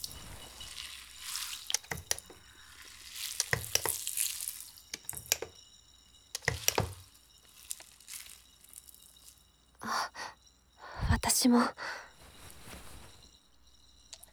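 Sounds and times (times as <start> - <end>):
foam being added and lathered: 0.0 - 5.3, 6.4 - 9.3
speech: 11.4 - 12.0.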